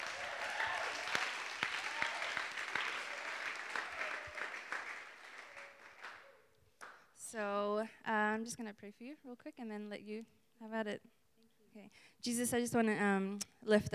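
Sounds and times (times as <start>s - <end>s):
audience applause welcoming a speaker at a Discipleship Training School gathering: 0.0s - 7.0s
speech: 7.3s - 11.2s, 11.8s - 13.9s.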